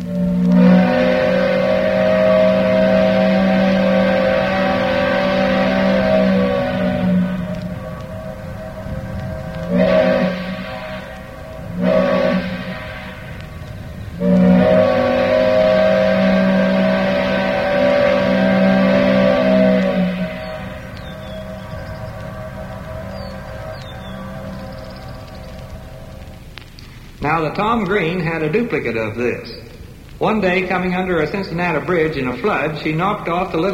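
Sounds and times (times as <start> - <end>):
towboat's deep steam whistle: 0.0 - 26.4
speech: 27.5 - 29.6, 30.2 - 33.7.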